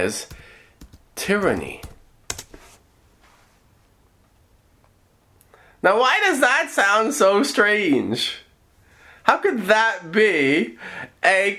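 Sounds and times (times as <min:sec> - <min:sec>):
speech: 0:00.0 - 0:00.4, 0:01.2 - 0:01.9, 0:05.8 - 0:08.4, 0:09.3 - 0:11.5
typing on a computer keyboard: 0:00.2 - 0:02.8.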